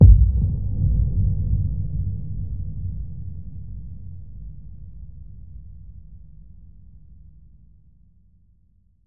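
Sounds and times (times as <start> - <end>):
boom: 0.0 - 3.8.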